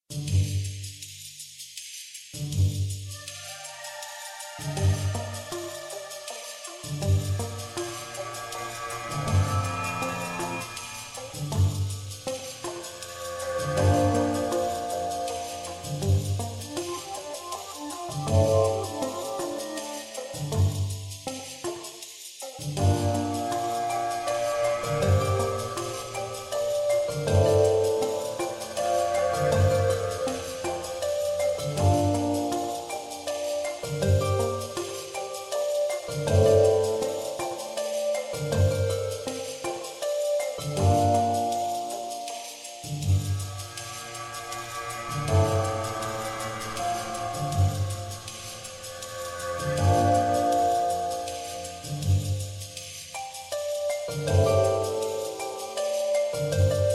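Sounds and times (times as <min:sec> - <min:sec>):
calm wilderness ice music: 0:02.4 - 0:56.9.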